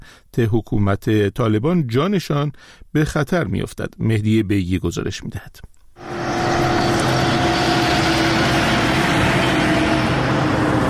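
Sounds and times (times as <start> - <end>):
speech: 0.1 - 5.7
truck engines of Afghan migrants arriving: 6.0 - 10.8.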